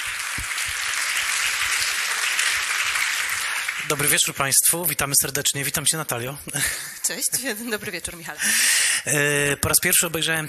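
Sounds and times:
audience applause: 0.0s - 4.7s
speech: 3.9s - 10.4s.

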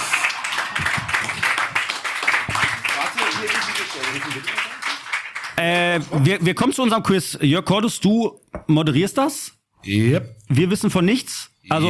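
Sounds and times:
audience applause: 0.0s - 6.3s
speech: 4.0s - 4.7s, 5.6s - 11.8s.

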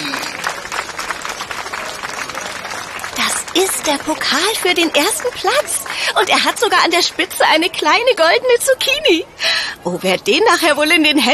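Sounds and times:
audience applause: 0.0s - 8.0s
speech: 3.6s - 11.3s.

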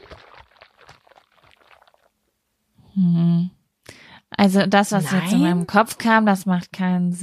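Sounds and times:
water sloshing in a hot water bottle: 0.0s - 2.1s
speech: 3.0s - 3.3s, 4.4s - 7.2s.

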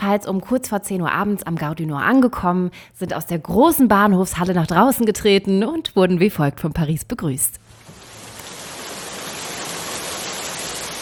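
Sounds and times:
speech: 0.0s - 7.6s
pouring rain: 7.6s - 11.0s.

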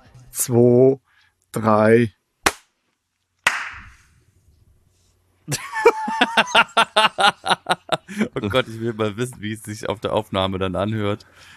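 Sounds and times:
speech: 0.4s - 2.2s, 8.2s - 11.5s
clapping: 3.5s - 3.9s
laughter: 5.5s - 9.1s.

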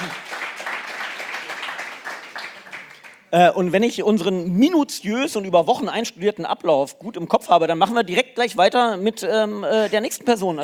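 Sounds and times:
applause: 0.0s - 3.4s
speech: 3.3s - 10.6s.

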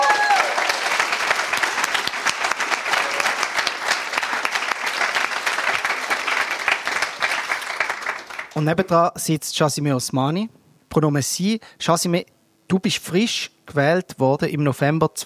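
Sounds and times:
audience applause: 0.0s - 8.6s
speech: 8.6s - 15.2s.

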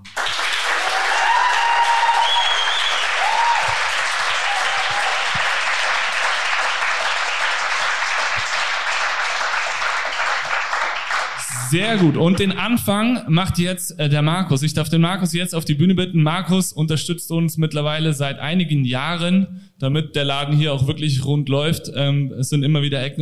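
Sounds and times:
audience applause: 0.0s - 12.6s
speech: 11.7s - 23.2s.

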